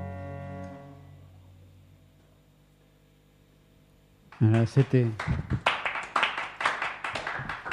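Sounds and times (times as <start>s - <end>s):
audience clapping: 4.3s - 7.7s
speech: 4.4s - 5.7s.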